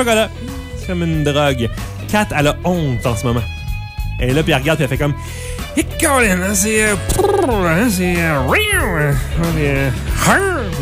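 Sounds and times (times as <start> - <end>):
speech: 0.0 - 3.6, 4.2 - 10.7
person imitating a cat meowing: 7.1 - 7.8.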